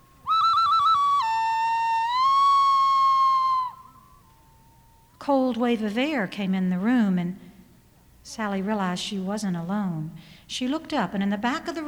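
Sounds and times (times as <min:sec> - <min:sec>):
bird call: 0:00.0 - 0:04.0
speech: 0:05.3 - 0:07.4, 0:08.3 - 0:11.8.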